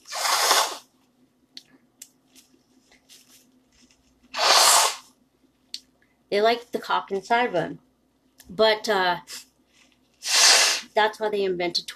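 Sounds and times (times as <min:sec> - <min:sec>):
nose blowing: 0:00.0 - 0:00.9, 0:04.3 - 0:05.1, 0:10.2 - 0:10.9
speech: 0:06.3 - 0:07.9, 0:08.5 - 0:09.4, 0:11.0 - 0:11.9.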